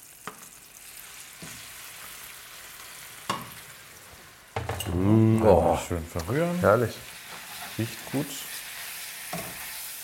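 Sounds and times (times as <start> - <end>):
cooked greens sizzling in hot oil: 0.0 - 10.0
speech: 4.9 - 7.1, 7.8 - 8.5.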